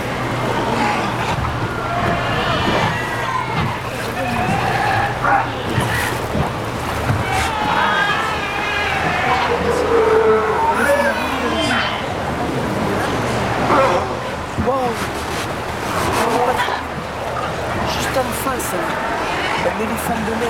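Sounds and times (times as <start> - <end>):
chorus of sea lions barking and honking: 0.0 - 14.6, 15.2 - 19.7
steady low rumble of surf or wind: 0.0 - 20.4.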